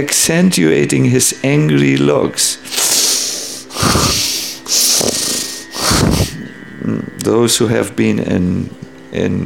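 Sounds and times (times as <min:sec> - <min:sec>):
speech: 0:00.0 - 0:03.1, 0:06.8 - 0:09.4
heavy angry snorting breath through nostrils: 0:02.7 - 0:06.4.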